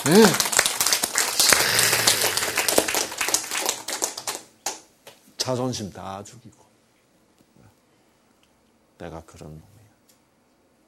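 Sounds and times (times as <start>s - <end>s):
speech: 0.0s - 0.5s, 5.5s - 6.7s, 9.0s - 9.8s
applause: 0.0s - 4.8s.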